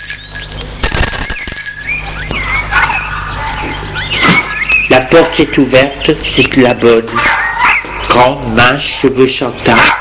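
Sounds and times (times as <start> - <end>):
doorbell ringing: 0.0 - 2.3
faint outdoor hum: 0.0 - 9.9
high chirping: 0.0 - 9.9
speech: 4.9 - 7.4, 8.2 - 9.9.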